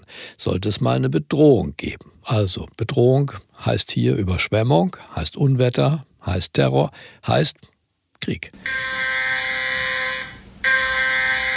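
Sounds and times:
speech: 0.4s - 9.4s
emergency warning test alert tone: 8.6s - 11.5s.

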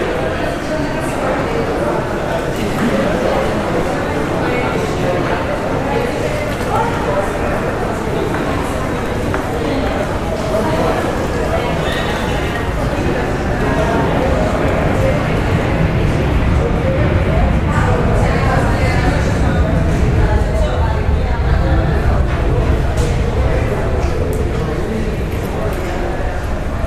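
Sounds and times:
many overlapping voices in an airport terminal hall: 0.0s - 26.8s
low rumble: 13.4s - 25.6s.

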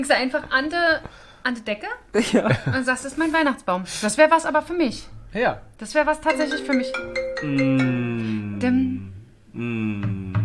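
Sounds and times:
speech: 0.0s - 8.9s, 9.6s - 10.2s
telephone melodic electronic ringtone for an incoming call: 6.3s - 8.2s.

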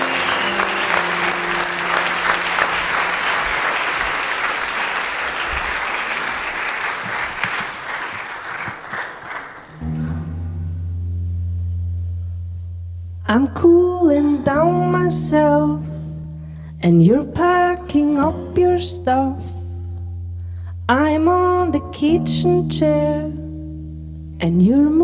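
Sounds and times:
low sustained musical tones: 0.0s - 3.5s, 9.8s - 24.4s
audience applause for a performer: 0.0s - 9.9s
speech: 13.4s - 15.9s, 16.8s - 19.5s, 20.9s - 23.3s, 24.4s - 25.0s.

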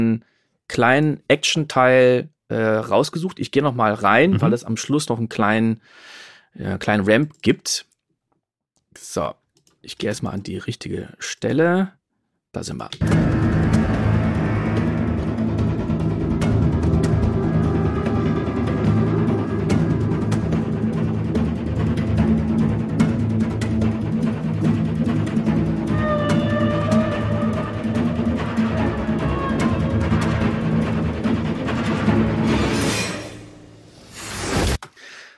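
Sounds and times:
speech: 0.0s - 7.9s, 9.0s - 13.4s
cinematic low rumble of a shark: 13.0s - 34.2s.

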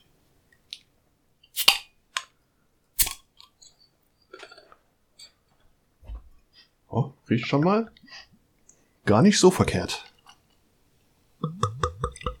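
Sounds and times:
beer bottle opening: 1.6s - 1.9s, 3.0s - 3.2s
speech: 6.9s - 8.0s, 9.1s - 10.1s
beer pouring: 11.4s - 12.3s.

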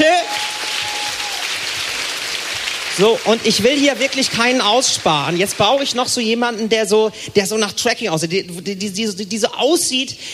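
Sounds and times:
audience applause: 0.0s - 6.4s
speech: 3.0s - 10.3s.

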